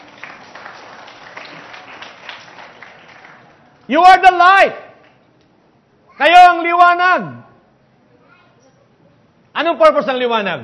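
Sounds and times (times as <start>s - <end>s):
congregation applauding during a church service: 0.0s - 4.3s
speech: 3.9s - 4.8s, 6.2s - 7.4s, 9.6s - 10.6s.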